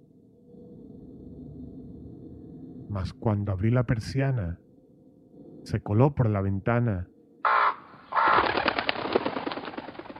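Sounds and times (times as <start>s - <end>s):
speech: 2.9s - 4.6s, 5.7s - 7.1s
raven flapping its wings: 7.5s - 10.1s.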